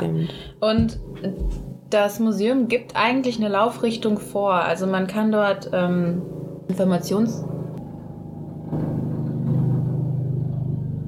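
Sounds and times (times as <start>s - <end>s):
speech: 0.2s - 7.5s
helicopter droning overhead: 2.4s - 11.0s.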